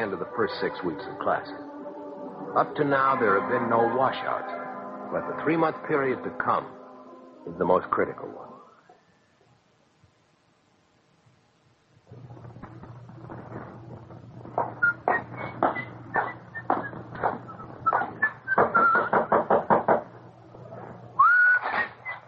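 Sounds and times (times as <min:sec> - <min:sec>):
speech: 0:00.0 - 0:01.7, 0:02.5 - 0:06.8, 0:07.4 - 0:08.5
low steady hum: 0:00.0 - 0:18.6
faint whistling tone: 0:14.8 - 0:19.2, 0:21.2 - 0:22.2
knocking on a door: 0:18.0 - 0:20.1.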